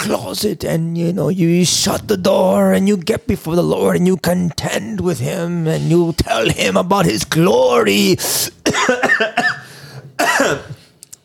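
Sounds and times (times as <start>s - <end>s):
speech: 0.0s - 9.6s
person coughing after swallowing saliva: 6.2s - 6.8s, 8.2s - 10.9s.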